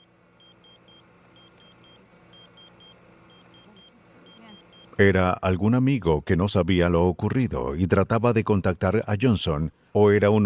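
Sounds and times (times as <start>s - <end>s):
pager beeping in sets of short high tones: 0.0s - 5.0s
speech: 5.0s - 10.4s.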